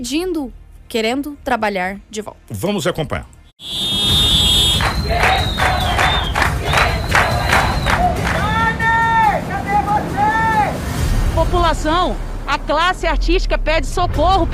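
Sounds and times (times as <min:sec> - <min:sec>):
speech: 0:00.0 - 0:03.8, 0:11.5 - 0:14.5
app drivers' car horns honking in protest: 0:03.6 - 0:10.9.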